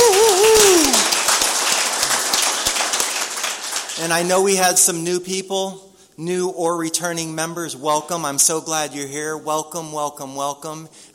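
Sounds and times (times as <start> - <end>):
group applause at a recovery meeting: 0.0 - 4.6
speech: 4.0 - 11.1.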